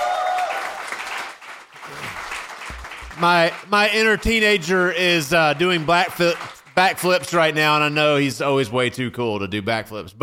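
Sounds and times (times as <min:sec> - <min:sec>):
whoops: 0:00.0 - 0:01.0
audience applause for band: 0:00.0 - 0:07.8
speech: 0:03.2 - 0:10.2.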